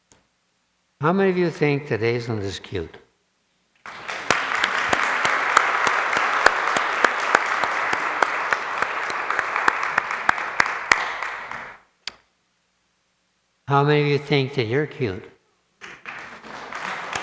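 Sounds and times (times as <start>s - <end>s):
speech: 1.0s - 3.0s, 13.7s - 15.3s
crowd applauding: 3.8s - 11.8s, 15.8s - 17.2s.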